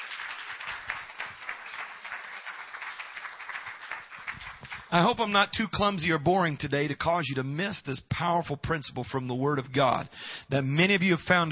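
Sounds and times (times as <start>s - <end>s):
audience clapping hands: 0.0s - 5.4s
speech: 4.9s - 11.5s.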